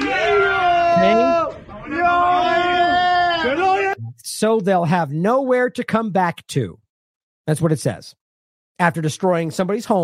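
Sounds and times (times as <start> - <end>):
group of voices cheering: 0.0 - 4.0
speech: 1.0 - 1.4, 4.4 - 6.8, 7.5 - 8.2, 8.8 - 10.0.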